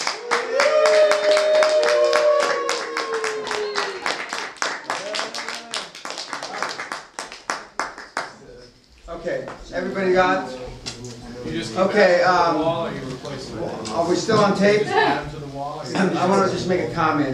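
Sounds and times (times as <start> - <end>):
audience applause and clapping: 0.0 - 8.4
speech: 10.0 - 10.5, 11.6 - 17.3.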